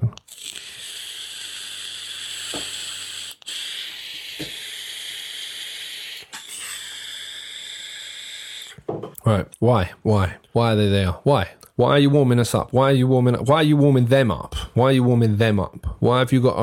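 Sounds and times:
person sipping coffee: 0.0s - 8.8s
person exhaling vape: 0.3s - 8.8s
speech: 9.3s - 16.6s.

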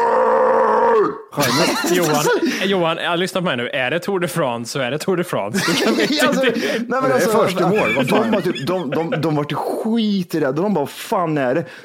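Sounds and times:
voice imitating angry shout at pedestrians: 0.0s - 2.4s
laughter: 1.4s - 2.9s, 5.5s - 9.6s
speech: 1.4s - 11.8s.

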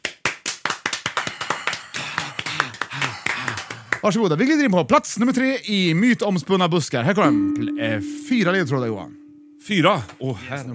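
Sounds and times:
small group clapping: 0.0s - 4.6s
speech: 4.0s - 10.7s.

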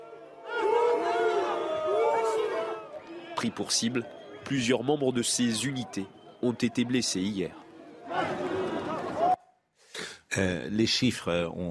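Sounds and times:
protesters booing: 0.0s - 9.4s
speech: 3.4s - 8.4s, 10.4s - 11.6s.

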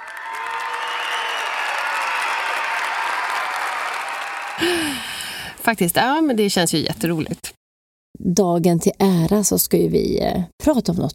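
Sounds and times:
cheers and whistles: 0.0s - 5.0s
crowd applause: 0.0s - 5.5s
speech: 4.6s - 7.4s, 8.3s - 11.1s.

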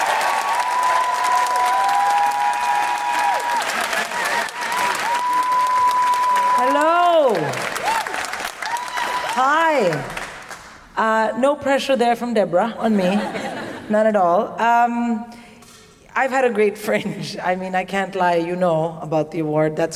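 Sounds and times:
audience whoops and shouts: 0.0s - 9.4s
audience at a live comedy show applauding a comedian: 0.0s - 10.7s
speech: 11.4s - 15.3s, 16.2s - 19.9s
laughter: 12.9s - 13.9s.

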